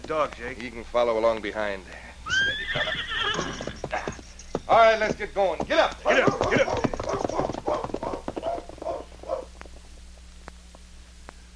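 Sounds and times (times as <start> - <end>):
horses trotting on a trail: 0.0 - 0.8, 2.3 - 10.3
speech: 0.1 - 3.0, 4.7 - 7.0.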